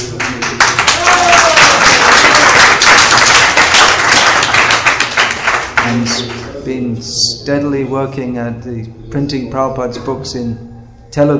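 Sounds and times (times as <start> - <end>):
audience clapping loudly: 0.0 - 6.5
speech: 6.8 - 11.3.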